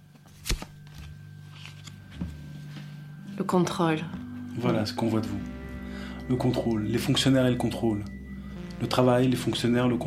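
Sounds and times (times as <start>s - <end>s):
card drawn from a deck: 0.3s - 2.0s
speech: 3.4s - 5.6s, 6.3s - 8.2s, 8.8s - 10.0s.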